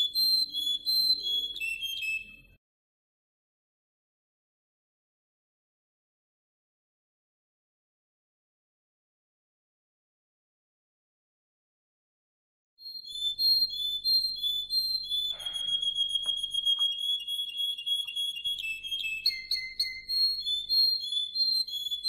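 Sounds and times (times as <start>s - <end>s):
Atlantic canary singing with rolling trills and whistled notes: 0.0s - 2.6s, 12.8s - 22.0s.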